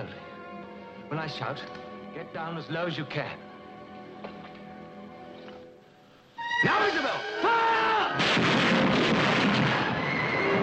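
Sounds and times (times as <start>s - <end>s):
speech: 1.1s - 3.5s, 6.6s - 7.6s
volley of rifle fire from multiple rifles near a bog: 8.2s - 10.2s.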